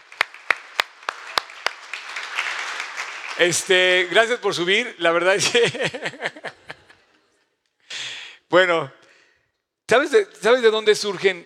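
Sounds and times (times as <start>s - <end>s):
crisp hand claps: 0.0s - 3.7s
round of applause: 0.0s - 4.4s
speech: 3.4s - 6.7s, 8.5s - 9.0s, 9.9s - 11.4s
laughter: 5.3s - 7.4s.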